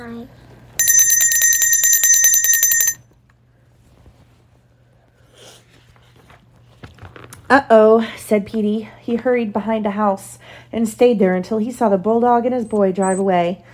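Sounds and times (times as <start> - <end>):
speech: 0.0 - 0.5, 7.5 - 13.7
bell ringing: 0.8 - 3.0.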